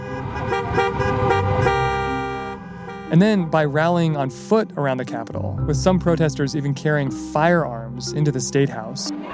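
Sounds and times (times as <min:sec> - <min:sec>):
car horns honking in a protest traffic jam in Michigan: 0:00.0 - 0:04.6
speech: 0:03.1 - 0:09.1.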